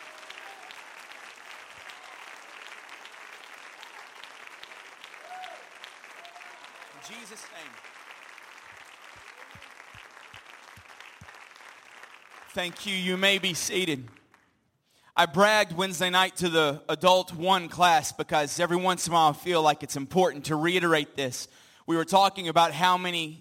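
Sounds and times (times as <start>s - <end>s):
audience clapping hands in praise: 0.0s - 14.6s
speech: 7.1s - 8.0s, 12.5s - 14.2s, 15.2s - 23.3s.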